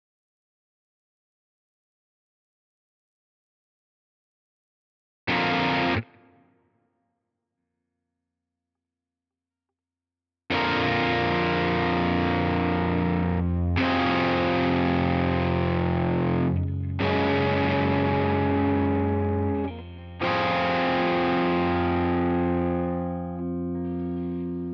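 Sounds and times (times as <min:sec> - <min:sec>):
guitar: 0:05.3 - 0:06.8, 0:10.5 - 0:24.7.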